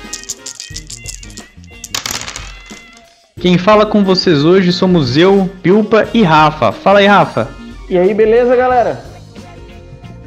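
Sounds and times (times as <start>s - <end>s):
dice rattling: 0.0s - 3.2s
low musical backing: 0.0s - 10.2s
speech: 3.4s - 9.1s.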